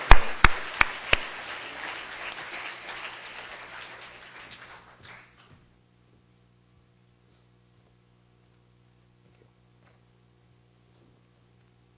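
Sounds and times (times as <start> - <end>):
audience applause in welcome: 0.0 - 5.5.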